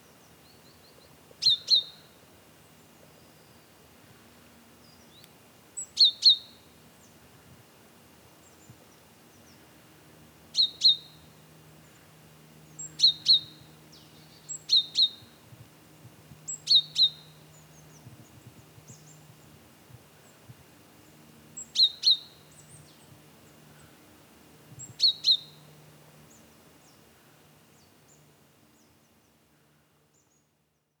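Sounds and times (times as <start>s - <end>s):
great tit calling: 1.4s - 2.0s, 10.6s - 11.2s, 12.8s - 15.3s, 16.5s - 17.4s, 21.6s - 23.0s, 24.8s - 25.7s.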